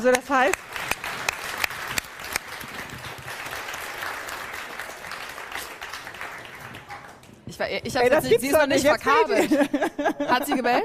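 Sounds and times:
audience applause: 0.5 - 7.5
laughter: 8.7 - 10.8.

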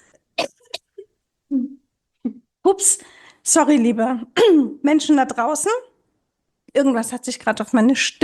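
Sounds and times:
person coughing: 0.4 - 1.0
speech: 2.7 - 5.9, 6.8 - 8.2.

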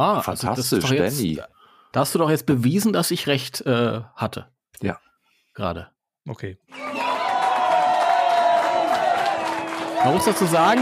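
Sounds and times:
speech: 0.0 - 6.8, 10.0 - 10.8
canned applause with cheering crowd and whoops: 6.7 - 10.8.

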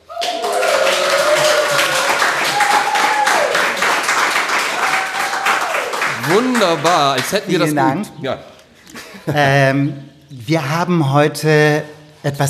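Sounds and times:
people cheering and whooping: 0.0 - 6.5
live audience applause: 0.0 - 7.7
speech: 6.3 - 8.5, 9.3 - 12.4.

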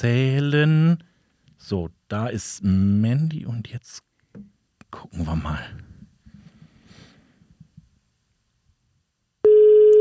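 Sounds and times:
speech: 0.0 - 5.9
telephone ringing tone on outgoing call: 9.4 - 10.0.

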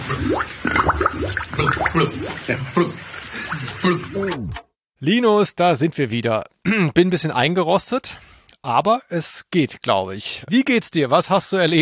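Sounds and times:
voice making wet gurgling blubbering noises imitating a fish: 0.0 - 4.6
speech: 0.1 - 0.8, 1.6 - 3.0, 3.8 - 11.8.

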